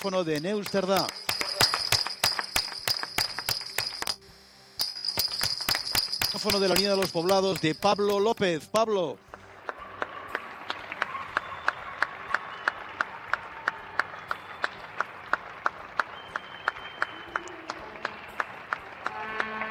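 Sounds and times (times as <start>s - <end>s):
speech: 0.0s - 1.3s, 6.3s - 9.3s
neighbors applauding from their homes: 0.0s - 4.0s, 5.8s - 19.6s.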